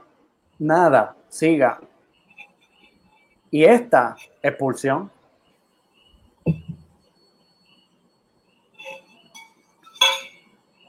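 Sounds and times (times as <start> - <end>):
speech: 0.6 - 1.9, 3.5 - 5.2
drinking glass of water clinking: 6.5 - 6.9, 8.8 - 10.6.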